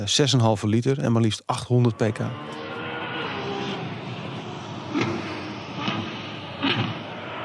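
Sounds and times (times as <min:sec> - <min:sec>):
speech: 0:00.0 - 0:02.7
Ferrari V12 engine revving on track: 0:01.8 - 0:07.4.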